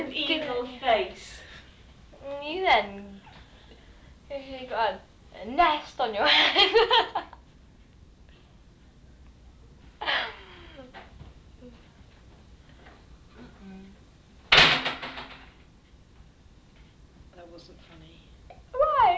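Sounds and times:
speech: 0:00.0 - 0:01.4, 0:02.2 - 0:03.2, 0:04.3 - 0:07.3
door slamming: 0:14.5 - 0:15.5.

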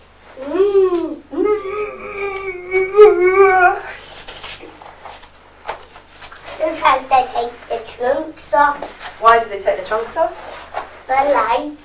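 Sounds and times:
child imitating an elephant's trumpet: 0:00.4 - 0:04.1
speech: 0:08.0 - 0:10.5, 0:11.1 - 0:11.8.

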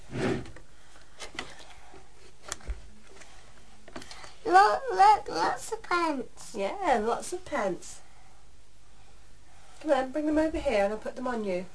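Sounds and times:
drawer being opened: 0:00.0 - 0:00.6
speech: 0:04.6 - 0:08.0, 0:09.8 - 0:11.7.

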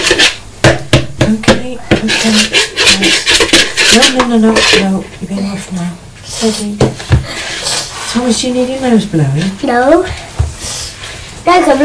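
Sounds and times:
knife mixing food in a bowl: 0:00.0 - 0:00.4, 0:01.9 - 0:05.1
speech: 0:01.8 - 0:02.6, 0:04.4 - 0:07.4, 0:08.2 - 0:10.2, 0:11.4 - 0:11.8.

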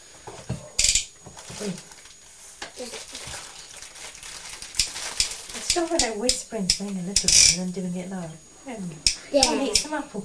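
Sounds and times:
rustling: 0:01.4 - 0:06.0
speech: 0:01.6 - 0:01.9, 0:05.8 - 0:10.2
clicks from a hard pasta shape: 0:04.2 - 0:07.6.

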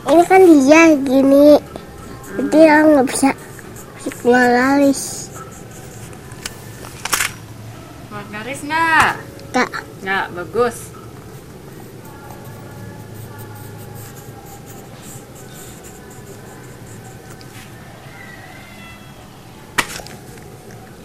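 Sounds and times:
speech: 0:00.1 - 0:03.4, 0:04.2 - 0:05.2, 0:08.5 - 0:10.9
child's pen scratching on paper while drawing: 0:01.7 - 0:06.8, 0:11.2 - 0:17.6.

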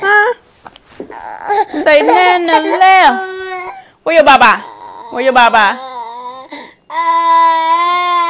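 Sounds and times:
infant crying loudly: 0:01.1 - 0:03.9, 0:04.6 - 0:08.2
speech: 0:01.3 - 0:03.3, 0:04.0 - 0:05.9.

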